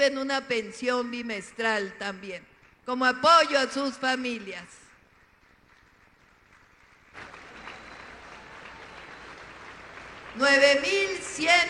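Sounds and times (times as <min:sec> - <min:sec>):
speech: 0:00.0 - 0:04.8, 0:10.4 - 0:11.6
audience applause: 0:05.4 - 0:11.2
shrill cheers and whistles: 0:07.2 - 0:10.0.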